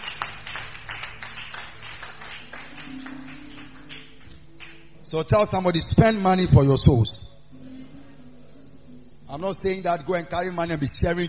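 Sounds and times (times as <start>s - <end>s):
crowd clapping: 0.0s - 5.0s
speech: 5.1s - 7.3s, 9.4s - 11.2s.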